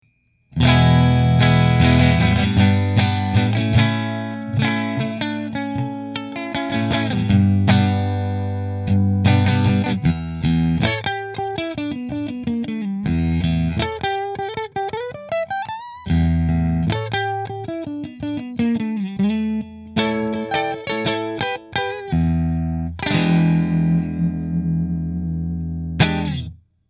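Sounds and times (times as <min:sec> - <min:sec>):
Fender guitar in position 1: 0:00.5 - 0:26.6.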